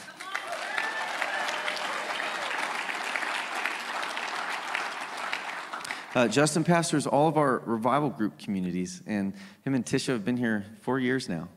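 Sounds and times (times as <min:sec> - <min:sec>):
audience applause: 0:00.0 - 0:06.8
speech: 0:06.2 - 0:11.5.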